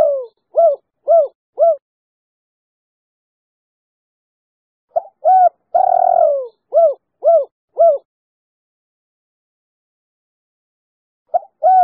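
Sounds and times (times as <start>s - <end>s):
spotted dove hooting: 0.0s - 1.8s, 5.0s - 8.1s, 11.3s - 11.8s.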